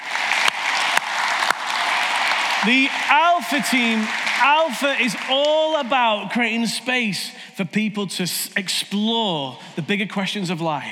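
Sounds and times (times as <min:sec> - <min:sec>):
audience applause: 0:00.0 - 0:06.4
speech: 0:02.6 - 0:10.8.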